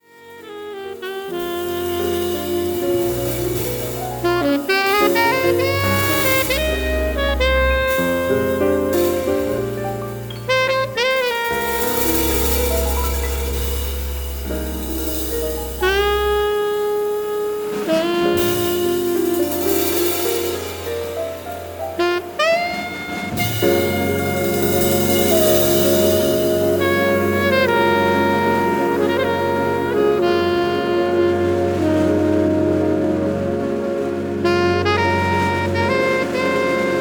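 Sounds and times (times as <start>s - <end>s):
saxophone: 0.0s - 37.0s.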